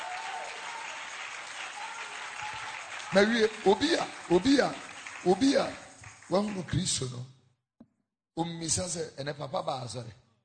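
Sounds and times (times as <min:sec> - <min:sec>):
congregation hand clapping during a church sermon: 0:00.0 - 0:06.8
speech: 0:03.1 - 0:07.4, 0:08.4 - 0:10.2.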